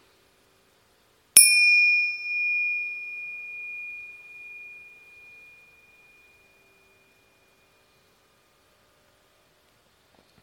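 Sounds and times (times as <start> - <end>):
small meditation bells ringing: 1.4 - 7.2.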